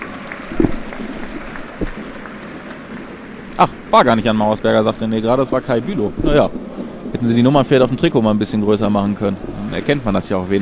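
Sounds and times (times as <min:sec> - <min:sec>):
stadium crowd applauding a substituted player: 0:00.0 - 0:04.4
speech: 0:03.6 - 0:10.5.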